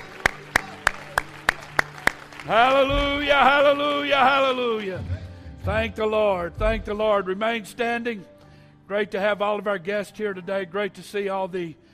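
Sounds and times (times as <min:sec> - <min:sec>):
audience clapping hands: 0:00.0 - 0:04.9
speech: 0:02.4 - 0:08.3, 0:08.9 - 0:11.8.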